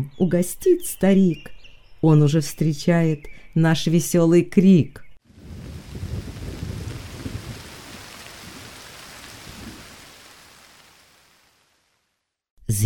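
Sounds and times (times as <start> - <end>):
speech: 0.0 - 5.0
deep thunder rumbling: 5.3 - 11.7
steady rain: 5.3 - 12.4.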